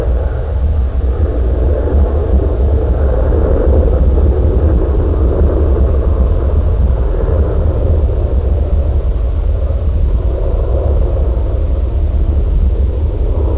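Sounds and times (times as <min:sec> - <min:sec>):
jet aircraft: 0:00.0 - 0:13.5.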